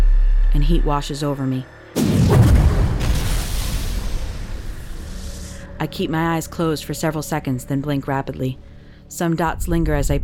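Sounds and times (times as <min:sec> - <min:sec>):
speech: 0:00.6 - 0:02.4, 0:05.8 - 0:10.2
deep booming explosion with whoosh: 0:02.0 - 0:05.6.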